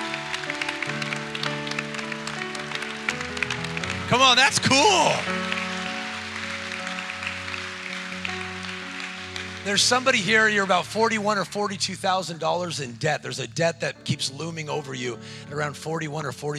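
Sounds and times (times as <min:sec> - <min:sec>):
audience clapping: 0:00.0 - 0:13.0
speech: 0:04.1 - 0:05.5, 0:09.6 - 0:16.5.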